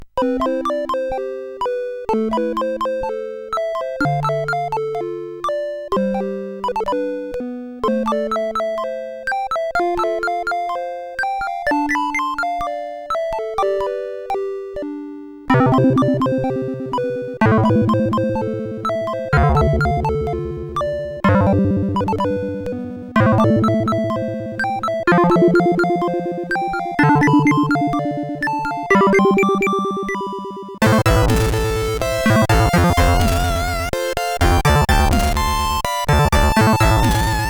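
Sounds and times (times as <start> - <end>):
MOS6581R4 tune: 0.2 - 37.4.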